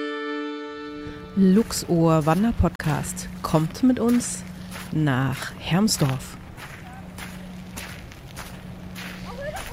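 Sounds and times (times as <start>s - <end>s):
constant low hum: 0.0s - 9.4s
light wind noise: 0.8s - 9.7s
hikers' footsteps crunching outdoors in an industrial area: 0.9s - 9.7s
speech: 1.4s - 6.4s.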